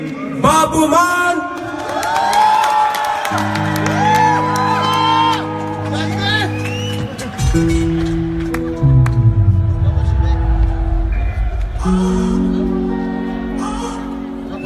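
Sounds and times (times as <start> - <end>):
speech: 0.0 - 1.5
audience cheering and applauding: 1.5 - 14.4
audience screaming: 1.8 - 5.8, 9.5 - 14.5.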